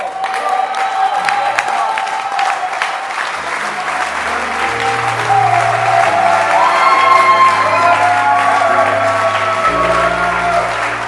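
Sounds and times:
whoops and cheers: 0.0 - 3.4, 4.1 - 11.0
audience applauding: 0.0 - 11.0
low sustained musical tone: 3.4 - 11.0.

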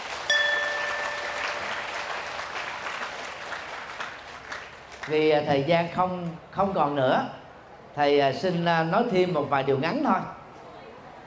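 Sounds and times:
audience applause: 0.0 - 5.1
high ringing tone: 0.3 - 2.6
speech: 5.0 - 7.4, 8.0 - 10.4.

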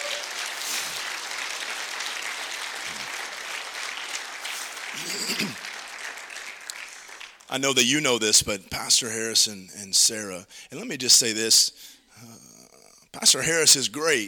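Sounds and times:
audience clapping: 0.0 - 7.6
speech: 7.6 - 12.5, 13.2 - 14.2.

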